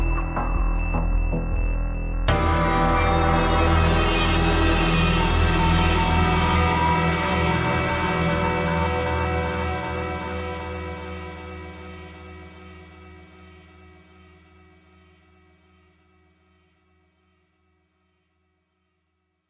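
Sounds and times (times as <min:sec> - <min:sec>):
synth: 0:00.0 - 0:13.3.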